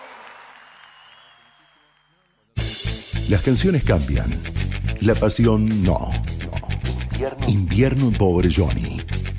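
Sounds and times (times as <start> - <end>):
audience applause: 0.0 - 2.6
speech: 3.3 - 6.5, 7.2 - 9.2.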